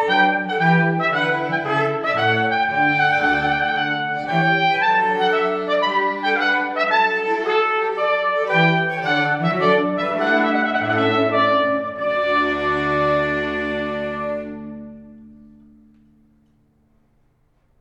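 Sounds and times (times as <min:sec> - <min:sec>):
trumpet quartet playing: 0:00.0 - 0:15.9.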